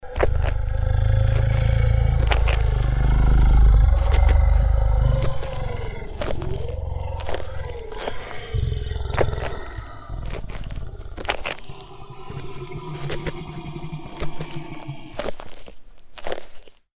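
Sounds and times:
large dinosaur eating: 0:00.0 - 0:16.9.

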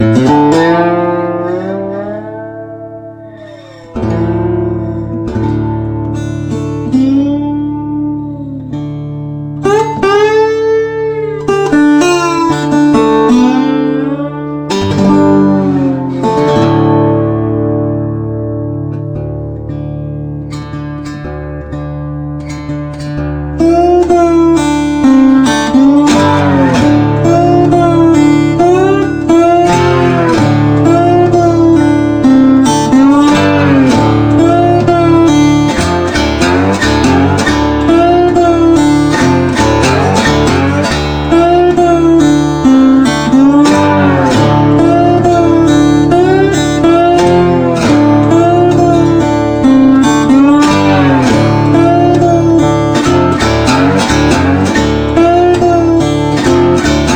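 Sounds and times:
solo guitar: 0:00.0 - 0:57.1.

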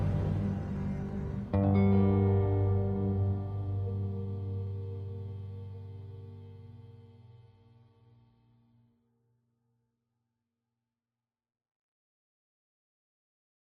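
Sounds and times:
dark bass: 0:00.0 - 0:07.6
low pad: 0:00.0 - 0:08.2.

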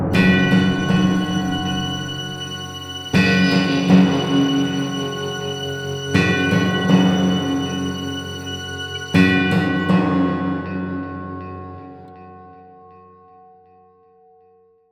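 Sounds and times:
musical stinger after action: 0:00.1 - 0:11.9.

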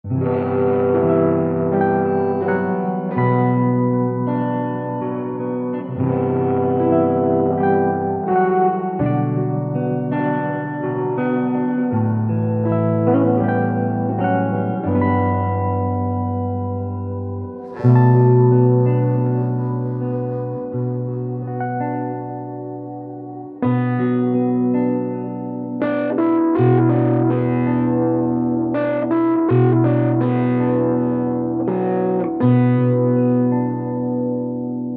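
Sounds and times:
guitar: 0:00.0 - 0:34.9.

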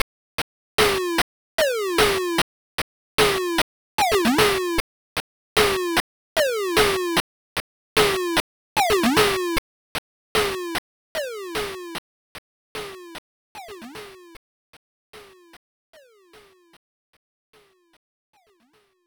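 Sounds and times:
main music: 0:00.8 - 0:02.4, 0:03.2 - 0:04.8, 0:05.6 - 0:07.2, 0:08.0 - 0:09.6, 0:10.4 - 0:12.0, 0:12.8 - 0:14.4, 0:15.1 - 0:16.8, 0:17.5 - 0:19.0.

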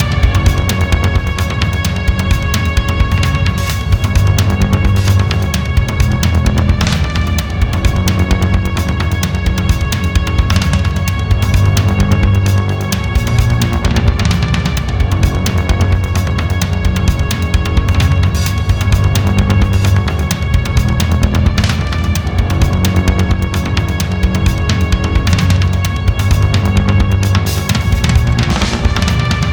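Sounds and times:
dramatic chase drums: 0:00.0 - 0:29.5.

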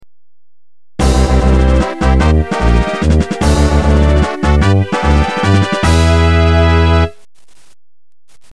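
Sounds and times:
fanfare: 0:01.0 - 0:07.2.

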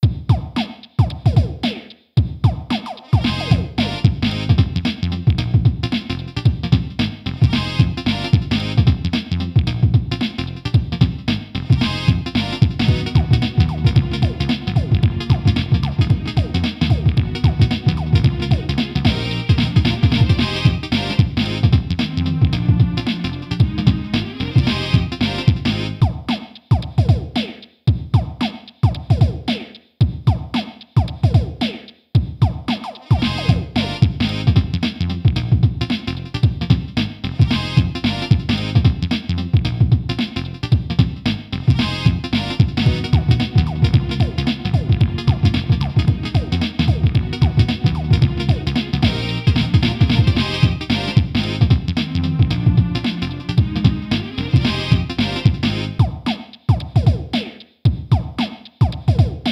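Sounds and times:
instrumental rap beat: 0:00.0 - 0:59.5.

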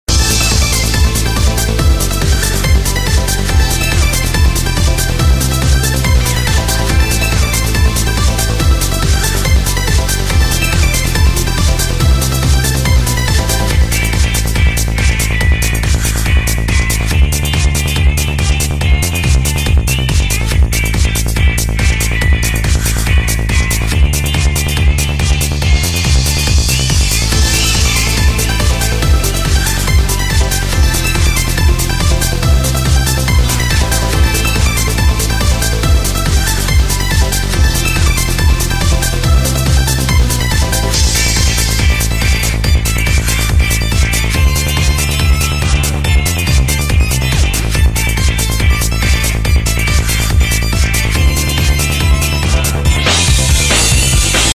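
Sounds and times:
trap background music: 0:00.1 - 0:54.5.

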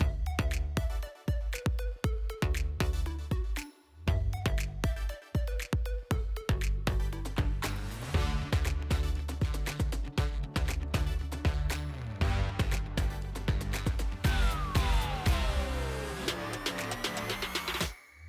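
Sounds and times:
music loop: 0:00.0 - 0:18.0.

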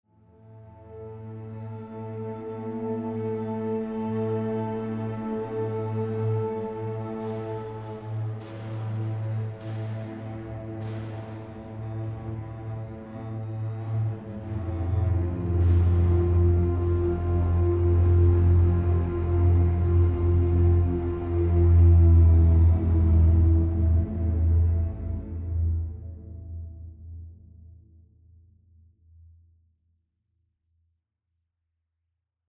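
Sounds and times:
tension music block: 0:01.3 - 0:27.0.

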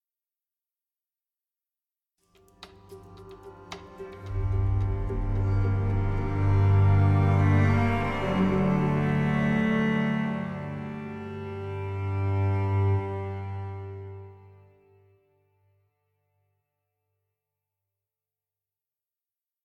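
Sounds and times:
string instrument: 0:02.2 - 0:15.8.

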